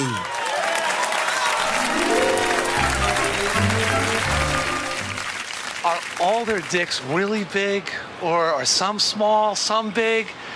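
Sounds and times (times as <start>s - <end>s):
audience applause and cheering: 0.0s - 7.4s
low musical tones: 1.7s - 5.4s
speech: 5.8s - 10.5s.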